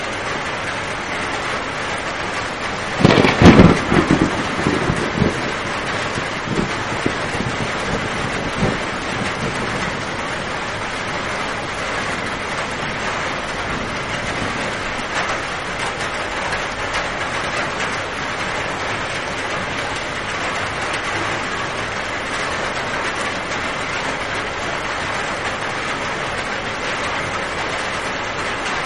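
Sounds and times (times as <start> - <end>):
rainstorm: 0.0 - 28.8
loud rough burst: 2.9 - 10.2.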